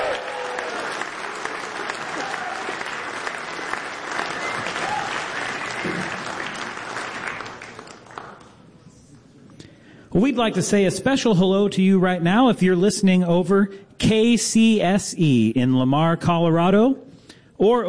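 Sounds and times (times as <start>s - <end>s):
audience applause: 0.0s - 8.6s
speech: 10.2s - 17.8s.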